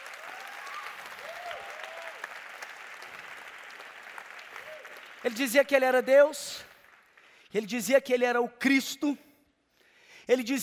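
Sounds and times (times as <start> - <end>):
audience applauding: 0.0 - 7.4
speech: 5.2 - 6.7, 7.5 - 9.2, 10.3 - 10.6.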